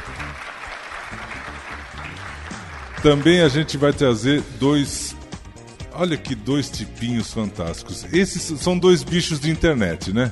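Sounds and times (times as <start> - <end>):
audience applause: 0.0 - 4.0
speech: 3.0 - 5.2, 6.0 - 10.3.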